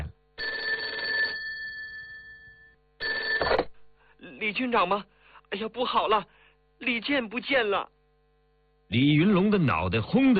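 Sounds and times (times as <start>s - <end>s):
telephone ringing on a desk: 0.0s - 3.7s
speech: 4.4s - 8.0s, 8.9s - 10.3s.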